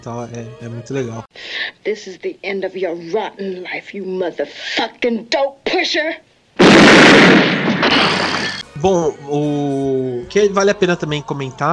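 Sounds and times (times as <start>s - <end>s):
speech: 0.0s - 11.7s
gunshot in a film: 6.6s - 8.6s.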